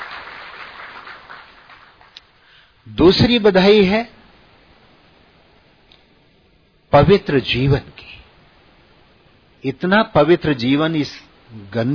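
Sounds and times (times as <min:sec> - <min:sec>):
crowd applauding: 0:00.0 - 0:02.2
speech: 0:02.9 - 0:04.2, 0:07.0 - 0:08.1, 0:09.6 - 0:11.9.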